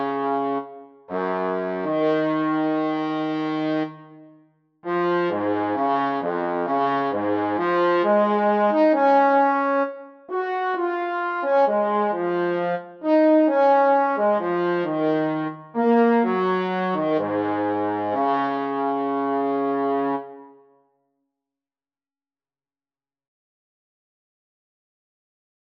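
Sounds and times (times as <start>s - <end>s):
fast trombone: 0.0s - 3.9s, 4.9s - 20.4s.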